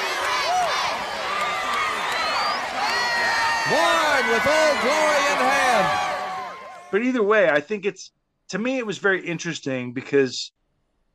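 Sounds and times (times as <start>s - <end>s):
wrestling crowd chanting: 0.0s - 6.7s
speech: 3.7s - 6.2s, 6.9s - 10.6s.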